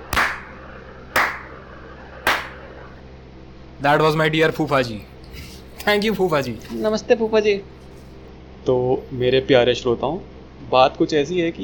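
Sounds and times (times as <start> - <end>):
slow hand claps: 0.0 - 1.6, 2.2 - 2.6
speech: 3.8 - 5.1, 5.8 - 7.7, 8.6 - 11.6.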